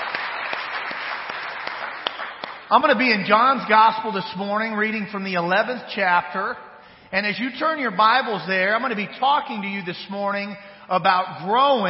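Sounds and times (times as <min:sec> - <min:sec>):
audience applause: 0:00.0 - 0:02.7
speech: 0:02.7 - 0:11.8.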